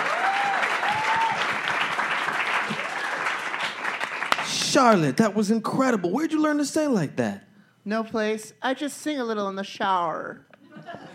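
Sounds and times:
crowd applause at a singing performance: 0.0s - 4.6s
speech: 4.7s - 10.5s
laughter: 10.6s - 11.1s.

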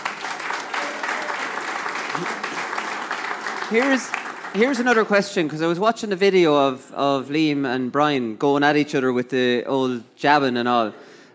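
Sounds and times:
live audience applause: 0.0s - 5.6s
speech: 2.2s - 2.4s, 3.7s - 11.0s.

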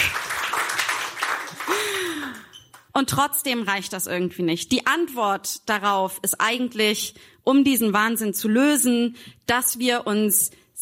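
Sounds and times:
applause: 0.0s - 2.9s
speech: 3.0s - 10.8s.

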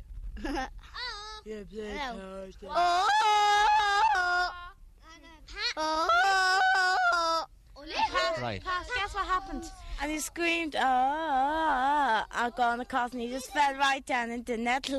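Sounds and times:
speech: 0.5s - 3.4s, 5.8s - 6.2s, 8.1s - 14.9s
person imitating a Tarzan-style jungle yell: 2.7s - 4.8s, 5.7s - 9.7s.

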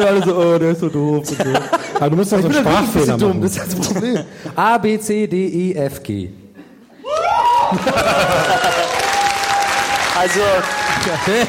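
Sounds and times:
speech: 0.0s - 6.4s, 7.7s - 9.0s, 10.2s - 11.4s
whoops and laughter: 7.0s - 10.0s
audience applause: 7.1s - 11.4s.

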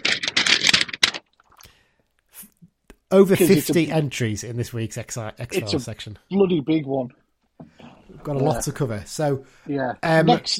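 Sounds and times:
paper rustling: 0.0s - 1.6s
speech: 3.1s - 7.2s, 8.2s - 10.5s.

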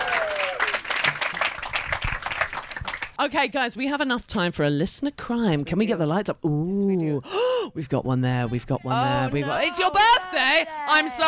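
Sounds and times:
audience applause: 0.0s - 3.2s
speech: 3.2s - 11.2s.

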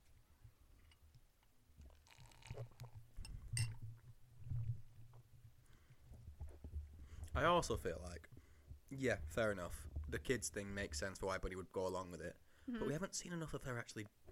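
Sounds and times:
soft slurping and swallowing: 1.8s - 3.0s
person sipping a drink: 1.8s - 3.8s
faint clink: 3.6s - 3.8s
speech: 7.4s - 8.3s, 8.9s - 14.2s.

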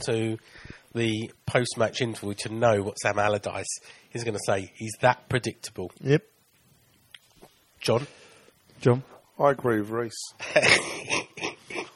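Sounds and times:
speech: 0.0s - 6.3s, 7.8s - 8.2s, 8.8s - 11.2s
hacking cough: 10.4s - 11.9s.

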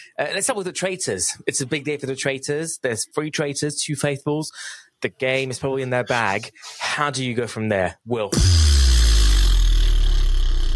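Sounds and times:
speech: 0.1s - 8.8s
loud fart: 8.4s - 10.7s.

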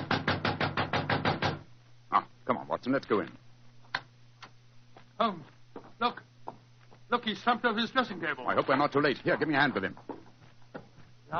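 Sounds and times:
knocking on a dressing room door: 0.0s - 1.7s
speech: 2.2s - 3.4s, 5.2s - 6.2s, 7.1s - 10.1s.

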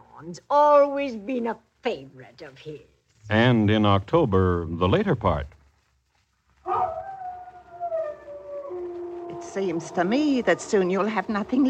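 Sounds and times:
speech: 0.2s - 5.6s, 9.4s - 11.6s
dog howling: 6.6s - 11.6s.

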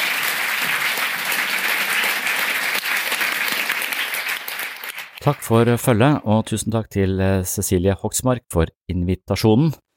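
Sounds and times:
audience applause: 0.0s - 5.6s
speech: 5.2s - 9.9s.

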